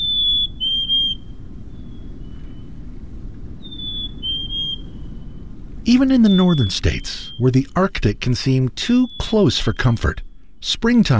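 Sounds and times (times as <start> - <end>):
black-capped chickadee singing clear whistled two-note song: 0.0 - 2.7, 3.6 - 7.7, 8.8 - 10.7
steady low rumble: 0.0 - 8.7
speech: 5.8 - 11.1.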